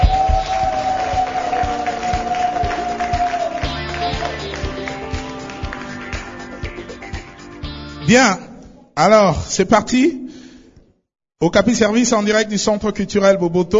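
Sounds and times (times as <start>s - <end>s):
audience applause: 0.0s - 7.2s
speech: 8.1s - 8.4s, 9.0s - 10.2s, 11.4s - 13.7s.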